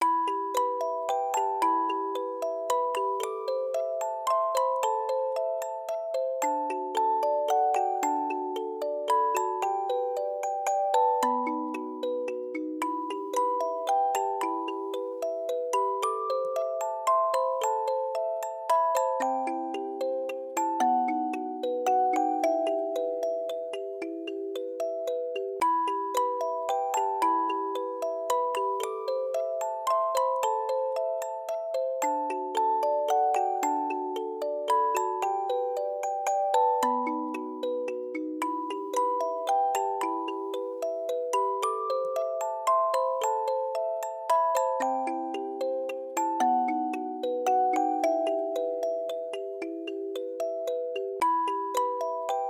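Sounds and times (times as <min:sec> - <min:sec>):
music box: 0:00.0 - 0:52.4.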